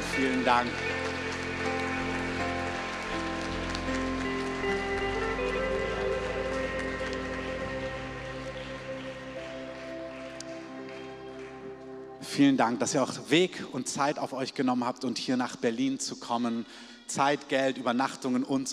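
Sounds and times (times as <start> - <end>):
audience applause: 0.0 - 12.4
speech: 0.2 - 1.0, 12.4 - 18.7.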